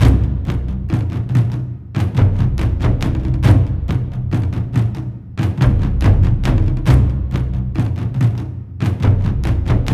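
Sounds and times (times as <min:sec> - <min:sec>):
drums: 0:00.0 - 0:09.9.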